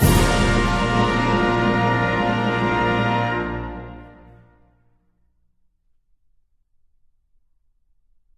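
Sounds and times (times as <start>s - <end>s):
national anthem: 0.0s - 4.7s.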